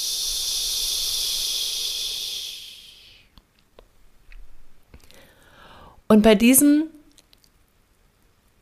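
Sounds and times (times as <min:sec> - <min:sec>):
long gentle hissing exhale on ch: 0:00.0 - 0:03.4
speech: 0:06.1 - 0:07.0.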